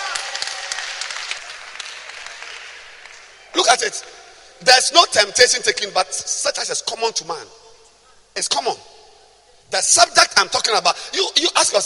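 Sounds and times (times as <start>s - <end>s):
crowd clapping: 0.0s - 3.5s
speech: 3.6s - 7.6s, 8.4s - 8.9s, 9.7s - 11.8s.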